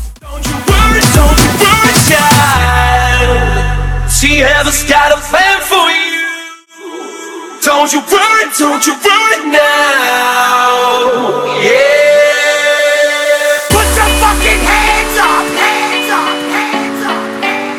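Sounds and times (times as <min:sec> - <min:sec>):
a cappella vocals at 129 BPM: 0:00.2 - 0:17.7.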